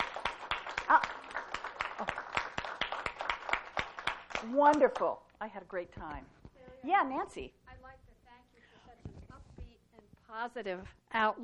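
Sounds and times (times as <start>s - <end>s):
audience applause after a speaker's talk: 0.0s - 4.8s
speech: 4.4s - 7.6s, 10.3s - 11.4s.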